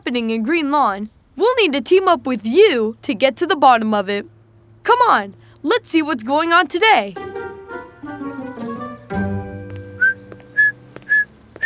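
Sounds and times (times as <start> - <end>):
speech: 0.0 - 7.3
tonal music: 7.2 - 11.1
person whistling imitating bird song: 9.8 - 11.6.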